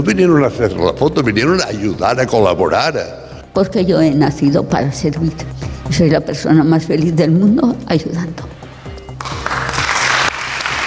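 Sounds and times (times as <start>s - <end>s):
speech: 0.0s - 8.6s
audience applause: 9.2s - 10.8s.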